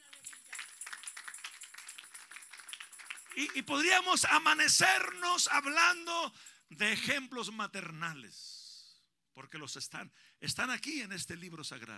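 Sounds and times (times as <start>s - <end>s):
audience applause: 0.0s - 4.0s
speech: 3.4s - 8.6s, 9.4s - 11.9s.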